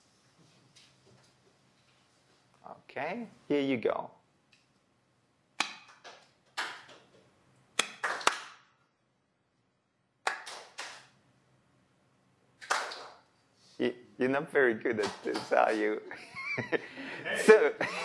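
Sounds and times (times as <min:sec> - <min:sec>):
speech: 0:02.9 - 0:04.2, 0:13.8 - 0:18.0
recorded hand claps: 0:05.6 - 0:07.2, 0:07.8 - 0:08.7, 0:10.2 - 0:11.2, 0:12.6 - 0:13.2
laughter: 0:16.0 - 0:18.0.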